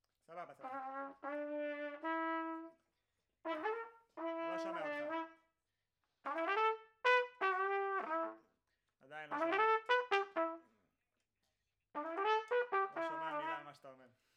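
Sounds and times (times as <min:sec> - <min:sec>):
trumpet in a room: 0:00.3 - 0:02.9, 0:03.5 - 0:05.5, 0:06.3 - 0:10.9, 0:12.0 - 0:14.1.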